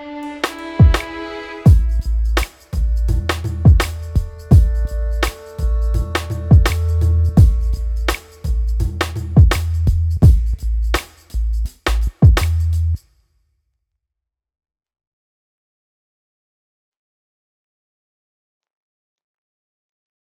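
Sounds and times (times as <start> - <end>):
Afrobeat music: 0.2 - 12.8.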